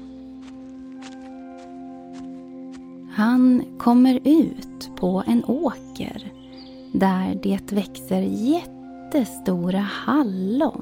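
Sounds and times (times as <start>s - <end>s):
soft footsteps walking out of a barn with cows and sheep: 0.0s - 3.1s
speech: 3.2s - 10.8s.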